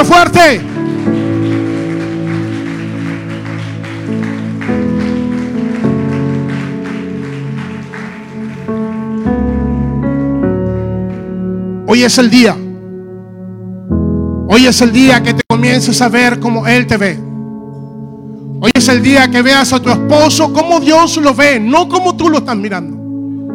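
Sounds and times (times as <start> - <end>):
speech: 0.0 - 0.8, 11.9 - 12.6, 14.6 - 17.3, 18.6 - 23.0
audience applause: 0.5 - 11.3.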